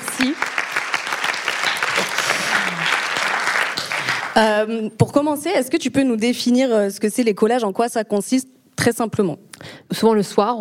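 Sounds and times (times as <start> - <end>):
audience applause: 0.0 - 4.4
speech: 0.2 - 0.6, 4.4 - 10.5.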